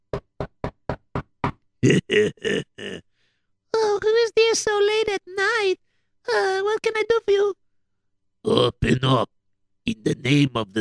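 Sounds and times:
knocking on a door: 0:00.1 - 0:01.6
speech: 0:01.8 - 0:03.1, 0:04.5 - 0:07.6, 0:08.4 - 0:09.3, 0:09.9 - 0:10.7.

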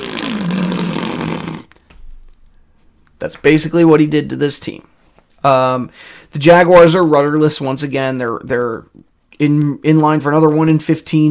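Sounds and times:
voice imitating a deflating balloon: 0:00.0 - 0:01.8
speech: 0:03.2 - 0:11.2.

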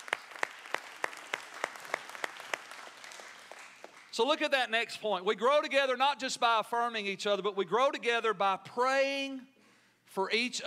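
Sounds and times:
audience round of applause: 0:00.0 - 0:04.1
speech: 0:04.2 - 0:09.5, 0:10.1 - 0:10.6.

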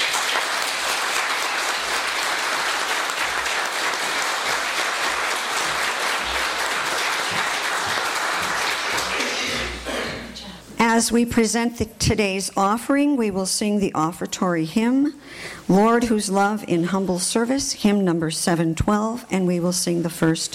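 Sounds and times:
audience applause: 0:00.0 - 0:09.8
speech: 0:11.0 - 0:20.5.

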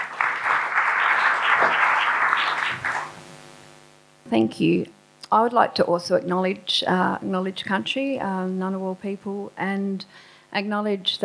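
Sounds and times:
audience applause greeting a speaker coming to the podium: 0:00.0 - 0:03.2
speech: 0:04.3 - 0:11.2.

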